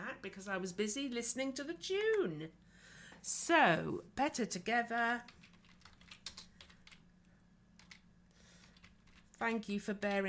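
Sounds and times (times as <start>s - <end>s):
speech: 0.2s - 5.4s, 9.4s - 10.2s
typing on a computer keyboard: 5.3s - 7.0s, 7.8s - 8.0s, 8.6s - 9.3s, 10.0s - 10.2s.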